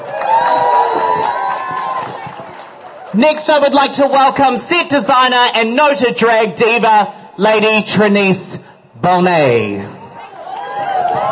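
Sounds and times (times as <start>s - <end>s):
audience cheering and whooping at a live show: 0.0s - 3.2s, 10.1s - 11.3s
speech: 3.2s - 10.0s.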